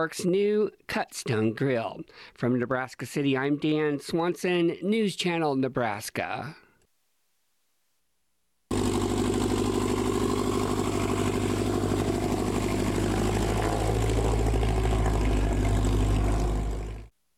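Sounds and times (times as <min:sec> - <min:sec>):
speech: 0:00.0 - 0:06.6
small aircraft engines buzzing at a fly-in breakfast in northeast Nebraska: 0:08.7 - 0:17.1.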